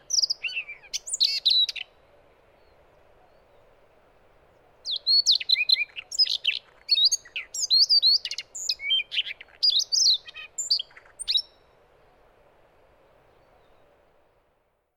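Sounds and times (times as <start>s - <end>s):
Siberian rubythroat: 0.0s - 2.0s, 4.6s - 11.6s.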